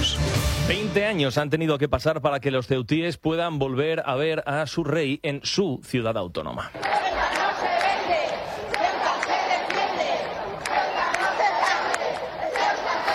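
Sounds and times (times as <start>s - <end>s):
whistles: 0.0s - 0.3s
speech: 0.7s - 7.0s
large crowd shouting and cheering in welcome: 6.7s - 13.1s.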